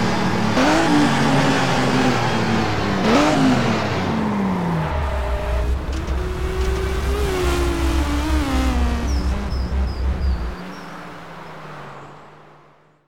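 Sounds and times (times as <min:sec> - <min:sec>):
BMW M3 E46 engine: 0:00.0 - 0:13.0.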